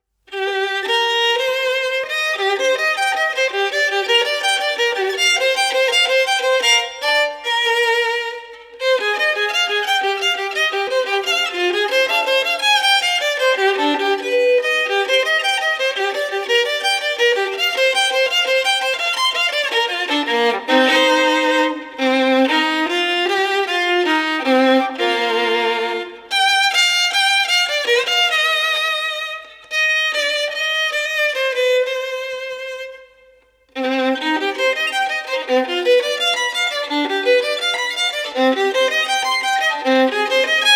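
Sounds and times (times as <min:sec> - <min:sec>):
violin solo: 0:00.0 - 0:40.7.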